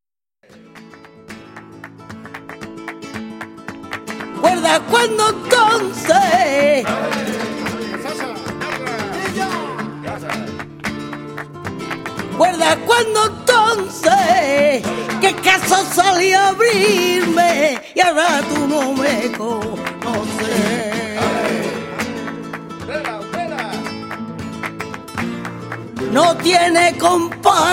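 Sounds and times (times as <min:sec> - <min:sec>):
flamenco solea and fandango por buleria: 0:00.4 - 0:27.7.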